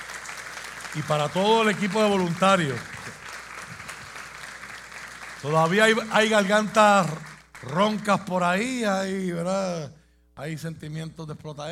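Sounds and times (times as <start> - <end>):
audience applause: 0.0 - 8.1
speech: 0.9 - 2.9, 5.4 - 11.7.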